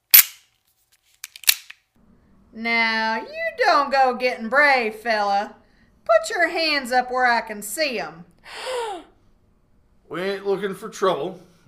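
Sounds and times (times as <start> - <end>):
revolver being cocked: 0.1 - 0.4, 1.2 - 1.8
speech: 2.5 - 8.7, 10.1 - 11.6.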